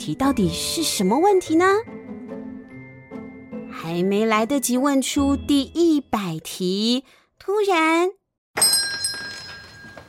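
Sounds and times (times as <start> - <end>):
speech: 0.0 - 2.1, 3.9 - 8.7
doorbell ringing: 8.6 - 10.0.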